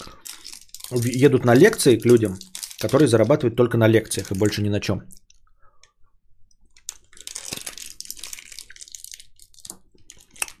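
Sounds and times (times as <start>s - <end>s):
coconut candies being chewed: 0.0s - 3.3s, 6.8s - 10.5s
speech: 0.9s - 5.2s.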